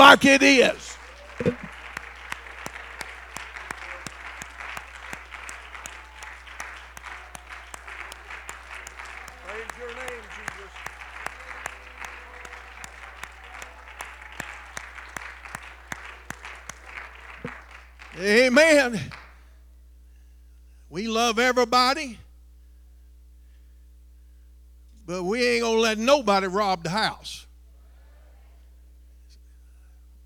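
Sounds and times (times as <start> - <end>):
audience clapping: 0.0 - 19.5
speech: 0.1 - 1.6, 18.2 - 19.2, 20.9 - 22.2, 25.1 - 27.4.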